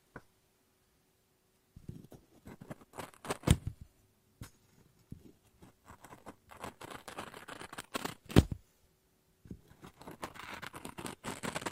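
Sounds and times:
faint steady hum: 0.0s - 11.7s
scissors snipping and cutting paper: 2.5s - 3.6s, 5.9s - 8.5s, 9.7s - 11.7s.

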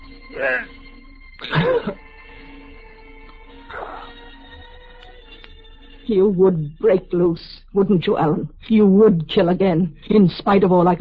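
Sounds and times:
speech: 0.3s - 0.8s, 1.4s - 2.0s, 6.1s - 10.9s
person choking, coughing and gasping for breath: 0.4s - 0.7s, 1.4s - 2.0s, 3.7s - 4.2s.

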